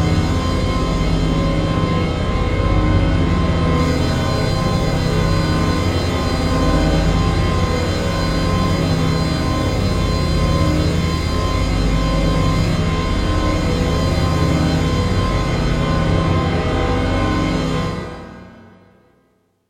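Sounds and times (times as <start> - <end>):
spooky horror synth drone: 0.0 - 18.8.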